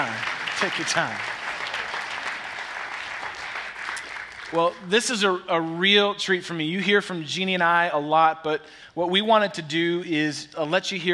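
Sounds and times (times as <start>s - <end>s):
speech: 0.0s - 1.4s, 4.5s - 11.1s
audience applause welcoming a panel at a Love Works weekend church gathering: 0.0s - 4.8s.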